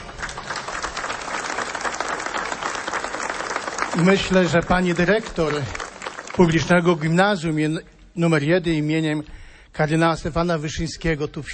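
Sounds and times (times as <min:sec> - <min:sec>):
audience applause: 0:00.0 - 0:07.4
speech: 0:04.0 - 0:05.8, 0:06.4 - 0:11.5.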